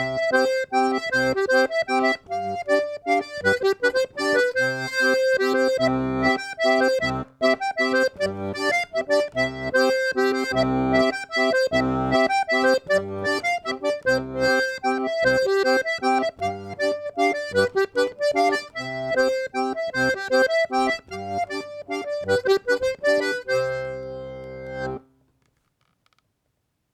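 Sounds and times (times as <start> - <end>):
mazurka music: 0.0 - 25.1.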